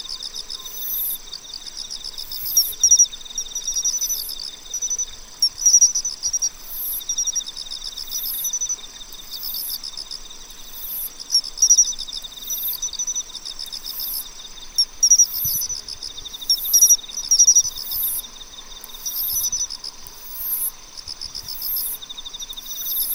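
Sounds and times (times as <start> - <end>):
layered insect trills: 0.0 - 23.1
pine cricket chirping: 0.0 - 23.1.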